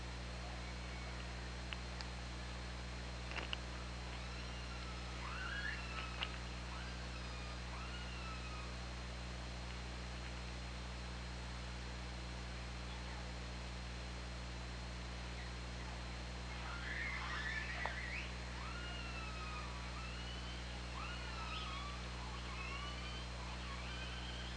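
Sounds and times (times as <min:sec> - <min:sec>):
low hum and hiss: 0:00.0 - 0:24.5
killer whale calls: 0:04.2 - 0:08.8, 0:16.5 - 0:24.5.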